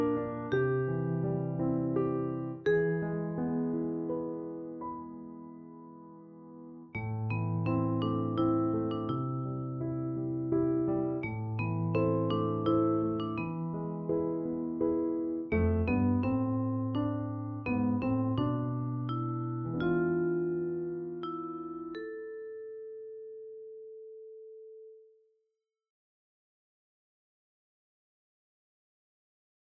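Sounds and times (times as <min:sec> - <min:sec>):
piano: 0:00.0 - 0:25.2
vibraphone: 0:02.2 - 0:03.2, 0:07.0 - 0:23.9.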